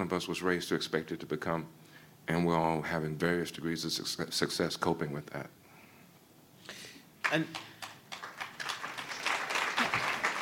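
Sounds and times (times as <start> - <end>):
speech: 0.0 - 5.6, 7.3 - 7.7
audience applause: 7.2 - 10.4.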